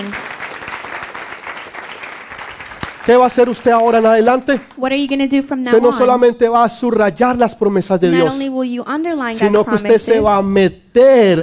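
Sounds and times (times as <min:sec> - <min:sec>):
crowd applause: 0:00.0 - 0:04.7
speech: 0:03.1 - 0:11.4.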